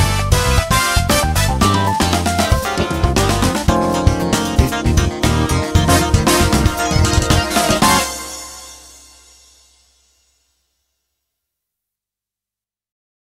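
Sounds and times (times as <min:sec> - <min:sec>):
funk jazz music: 0:00.0 - 0:09.3.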